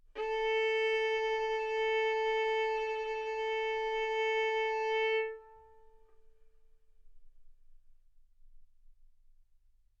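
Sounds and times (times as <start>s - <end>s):
violin bowed arco notes: 0.1s - 6.2s.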